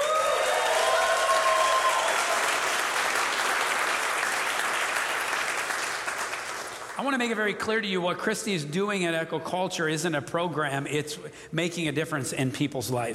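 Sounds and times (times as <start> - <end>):
whoops and cheers: 0.0 - 2.7
crowd applause: 0.0 - 7.1
speech: 7.0 - 13.1.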